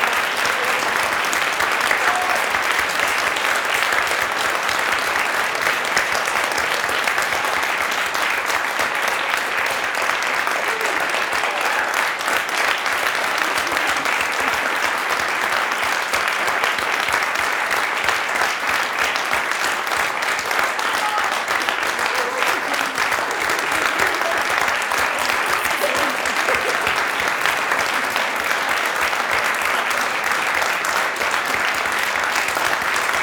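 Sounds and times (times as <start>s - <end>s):
audience applause: 0.0s - 33.2s
laughter: 5.7s - 7.4s, 10.3s - 16.1s, 20.4s - 32.4s.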